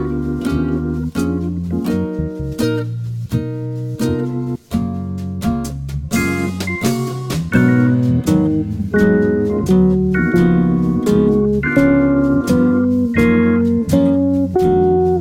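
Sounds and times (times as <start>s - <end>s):
low jazz guitar arpeggios over a major ii V I progression: 0.0s - 15.1s.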